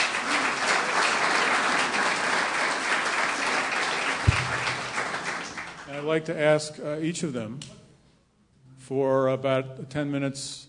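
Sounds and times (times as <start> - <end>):
audience applause welcoming panel guests: 0.0 - 6.0
thump: 4.3 - 4.8
speech: 6.0 - 7.8, 8.9 - 10.6.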